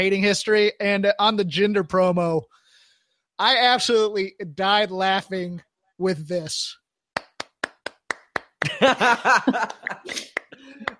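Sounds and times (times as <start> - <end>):
speech: 0.0 - 2.6, 3.4 - 6.8, 8.6 - 10.3
two people applauding in a played clip: 7.2 - 8.9, 9.6 - 10.9
laughter: 8.6 - 10.9.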